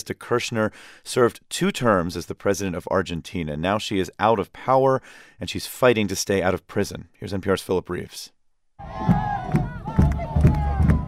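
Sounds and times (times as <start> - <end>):
speech: 0.0 - 9.7
crowd of Cristina Kirchner supporters cheering outside a courthouse in Buenos Aires: 8.8 - 11.0.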